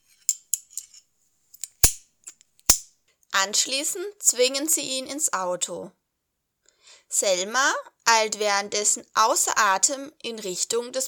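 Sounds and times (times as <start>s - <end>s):
handcuffs clicking shut: 1.6s - 2.9s
speech: 3.4s - 6.0s, 7.1s - 11.0s.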